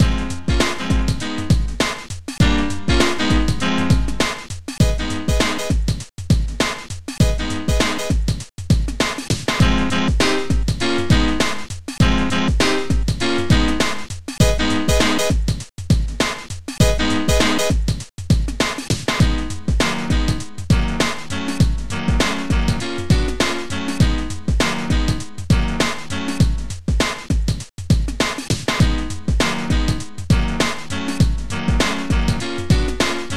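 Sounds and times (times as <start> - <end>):
jazz funk music: 0.0 - 6.6, 7.2 - 15.6, 16.8 - 27.3, 28.0 - 33.3.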